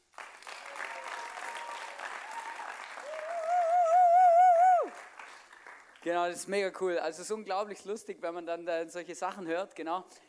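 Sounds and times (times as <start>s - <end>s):
audience applause: 0.0s - 6.0s
speech: 6.0s - 10.2s.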